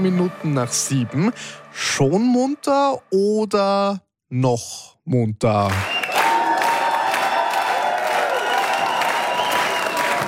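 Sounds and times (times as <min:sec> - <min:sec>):
speech: 0:00.0 - 0:06.0
applause: 0:05.6 - 0:10.2.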